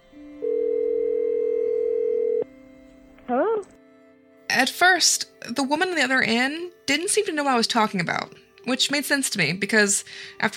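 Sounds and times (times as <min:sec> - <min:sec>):
telephone call ringing tone: 0:00.4 - 0:02.4
speech: 0:04.6 - 0:10.5.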